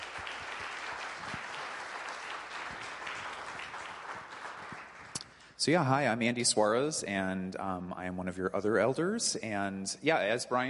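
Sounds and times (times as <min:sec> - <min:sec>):
round of applause: 0:00.0 - 0:05.6
speech: 0:05.6 - 0:10.6.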